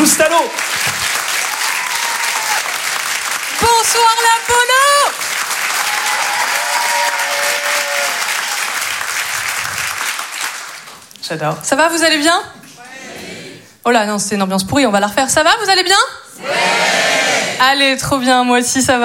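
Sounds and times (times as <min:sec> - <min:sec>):
audience applause: 0:00.0 - 0:11.1
speech: 0:00.2 - 0:00.7, 0:03.8 - 0:04.8, 0:11.3 - 0:12.6, 0:13.8 - 0:19.0.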